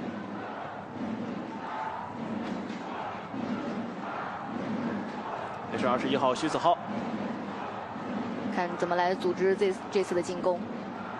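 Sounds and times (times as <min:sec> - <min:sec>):
Nanchang away fans chanting a team slogan: 0:00.0 - 0:11.1
speech: 0:05.8 - 0:07.1, 0:08.6 - 0:10.8.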